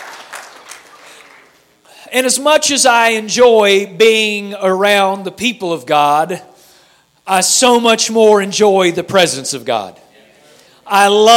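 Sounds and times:
audience applause: 0:00.0 - 0:01.6
speech: 0:02.1 - 0:06.5, 0:07.3 - 0:10.0, 0:10.9 - 0:11.3.

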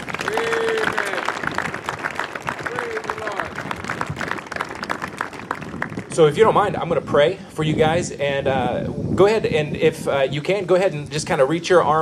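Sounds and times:
audience round of applause: 0:00.0 - 0:06.3
whoops and crowd voices: 0:00.1 - 0:01.6, 0:02.4 - 0:03.7
speech: 0:06.2 - 0:12.0.

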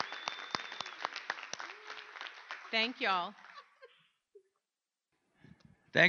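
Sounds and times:
audience round of applause: 0:00.0 - 0:03.9
speech: 0:02.7 - 0:03.4.

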